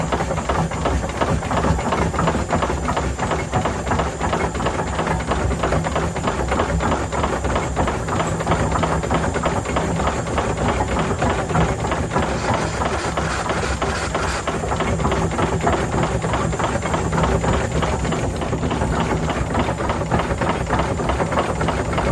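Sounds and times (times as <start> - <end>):
steam train motor mechanical noise: 0.0 - 22.0.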